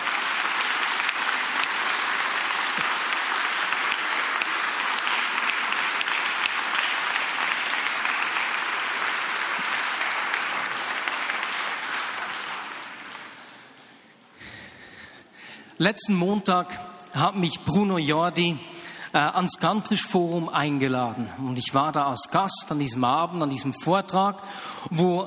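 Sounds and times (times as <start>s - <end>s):
audience applause: 0.0s - 13.8s
speech: 15.8s - 25.2s.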